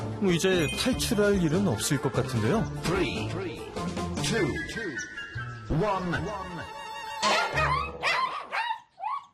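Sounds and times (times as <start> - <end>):
speech: 0.2 - 3.5, 4.3 - 5.1, 5.7 - 6.5
dogs barking and howling: 7.2 - 9.3.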